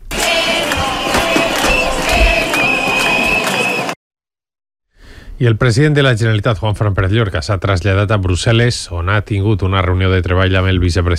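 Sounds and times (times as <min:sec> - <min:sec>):
teachers' street protest crowd voices: 0:00.0 - 0:04.0
shrill whistles blowing at a street protest: 0:00.5 - 0:04.0
speech: 0:05.4 - 0:11.1.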